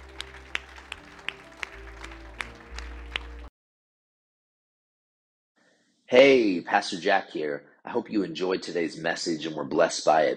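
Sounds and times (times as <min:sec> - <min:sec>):
audience applause: 0:00.0 - 0:03.5
speech: 0:06.1 - 0:10.3.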